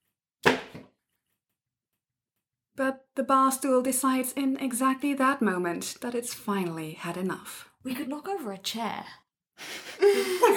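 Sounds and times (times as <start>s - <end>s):
shoe dropped on the floor: 0.4s - 0.9s
speech: 2.8s - 10.5s.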